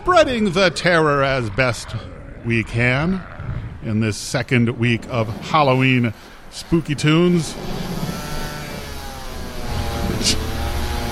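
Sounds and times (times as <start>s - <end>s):
speech: 0.0s - 7.9s
chainsaw running: 6.2s - 11.1s.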